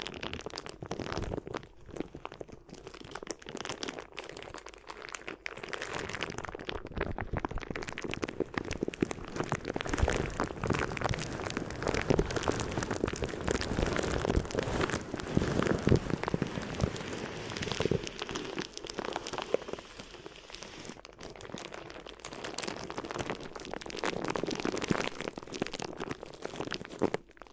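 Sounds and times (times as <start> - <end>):
crinkly material rubbed and crumpled: 0.0 - 27.5.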